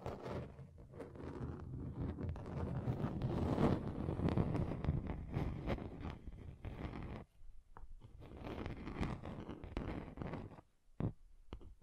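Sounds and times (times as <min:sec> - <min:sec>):
scratching on a table surface: 0:00.0 - 0:07.3, 0:08.0 - 0:11.8.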